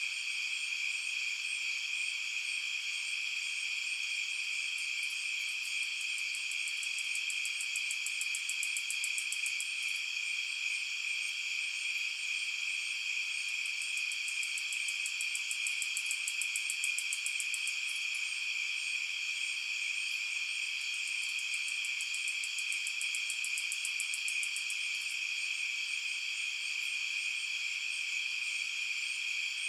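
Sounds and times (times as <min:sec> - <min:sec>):
night insects: 0:00.0 - 0:29.6.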